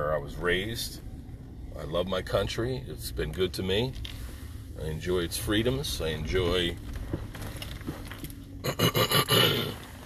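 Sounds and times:
speech: 0.3s - 1.1s, 1.8s - 4.2s, 4.8s - 7.2s, 8.7s - 9.7s
person clearing throat: 8.6s - 9.8s.

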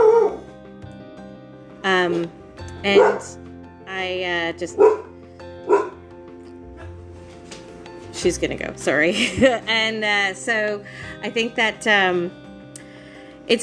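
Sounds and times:
speech: 2.0s - 5.9s, 8.2s - 12.4s
dog barking: 2.9s - 3.3s, 4.8s - 6.0s.

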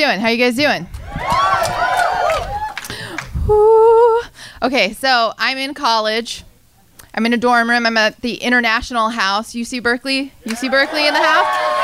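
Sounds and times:
speech: 0.0s - 1.3s, 3.5s - 4.0s, 4.6s - 6.5s, 7.2s - 11.6s
crowd cheering and whooping: 0.9s - 2.9s, 10.5s - 11.8s
crowd clapping: 1.0s - 3.3s, 10.5s - 11.8s.

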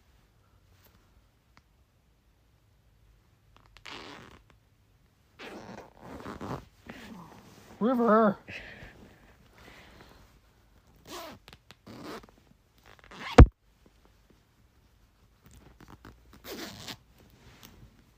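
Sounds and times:
zipper pulled back and forth: 3.8s - 4.5s, 5.4s - 7.4s, 11.0s - 13.5s, 15.7s - 17.1s
speech: 7.8s - 8.7s.

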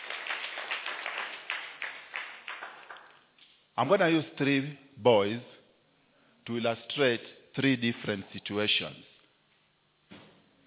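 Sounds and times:
audience clapping: 0.0s - 3.3s
speech: 3.8s - 5.5s, 6.4s - 9.1s.

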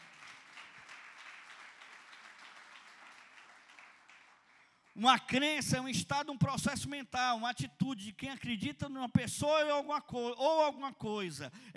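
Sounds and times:
audience applauding loudly: 0.0s - 4.8s
speech: 5.0s - 11.7s.

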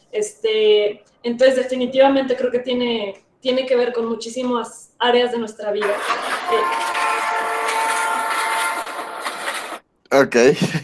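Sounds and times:
speech: 0.2s - 7.4s, 10.1s - 10.8s
laughter: 5.8s - 7.3s, 10.4s - 10.8s
alarm going off: 5.8s - 9.8s.

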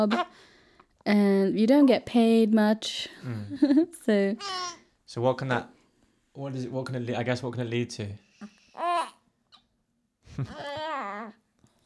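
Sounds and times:
speech: 0.0s - 5.8s, 6.4s - 9.1s, 10.4s - 11.4s
baby girl babbling and fussing: 4.4s - 4.8s, 8.7s - 9.6s, 10.5s - 11.4s.

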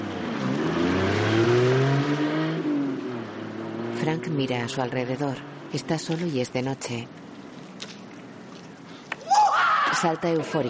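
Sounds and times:
car driving away: 0.0s - 5.8s
speech: 4.0s - 7.2s, 10.0s - 10.6s.

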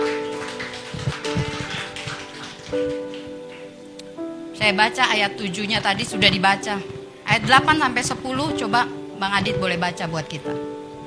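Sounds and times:
audience clapping: 0.0s - 3.8s
sustained keyboard chords: 0.0s - 11.0s
speech: 4.6s - 10.7s.

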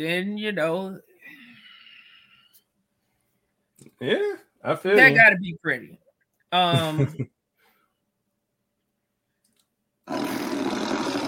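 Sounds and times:
speech: 0.0s - 1.1s, 3.8s - 7.4s
big cat roaring: 10.1s - 11.2s.

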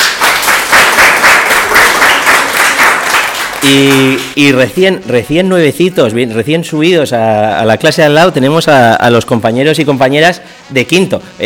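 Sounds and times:
class of children applauding: 0.0s - 4.4s
speech: 3.7s - 11.4s.

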